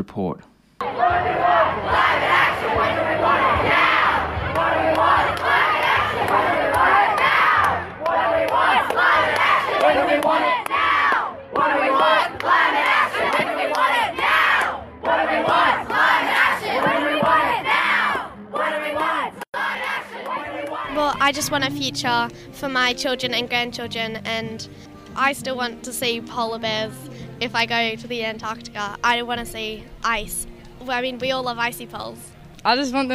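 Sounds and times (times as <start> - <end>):
speech: 0.0 - 3.9, 21.3 - 33.1
students' protest crowd chanting and shouting in the street: 0.8 - 21.7.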